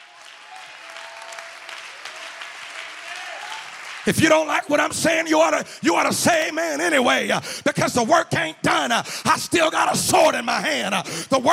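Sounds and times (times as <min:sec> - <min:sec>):
audience clapping: 0:00.0 - 0:05.2
speech: 0:04.1 - 0:11.5.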